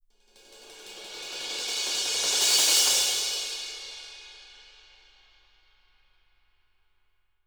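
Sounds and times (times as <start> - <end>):
cymbals: 0.3 - 5.5.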